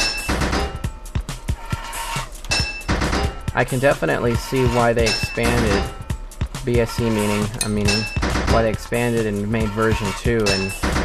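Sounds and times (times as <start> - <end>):
steady ringing tonal background: 0.0 - 11.0
video game hammer clanking on pipes: 2.4 - 3.6, 4.3 - 6.0, 6.9 - 11.0
speech: 3.6 - 6.0, 6.6 - 11.0.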